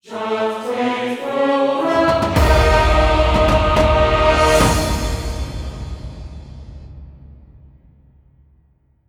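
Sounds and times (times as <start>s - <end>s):
level-up fanfare: 1.3s - 6.7s.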